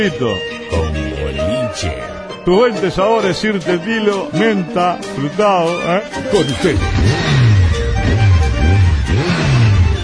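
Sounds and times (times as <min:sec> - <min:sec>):
speech: 0:00.0 - 0:00.8, 0:01.7 - 0:07.4
motorcycle engine revving: 0:06.3 - 0:10.0.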